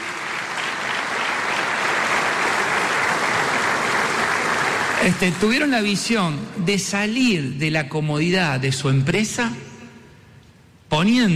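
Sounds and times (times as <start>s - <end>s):
audience applause: 0.0s - 5.7s
speech: 5.0s - 9.7s, 10.9s - 11.3s.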